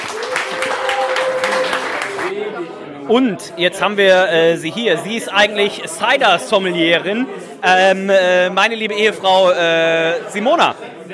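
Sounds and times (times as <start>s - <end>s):
audience applauding: 0.0s - 2.3s
speech: 3.1s - 11.1s.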